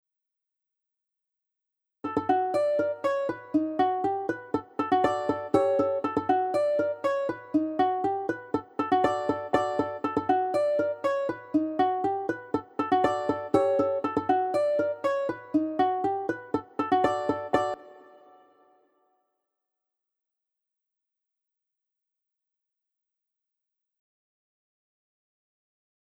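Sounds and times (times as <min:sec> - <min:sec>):
backing track: 0:02.1 - 0:18.4.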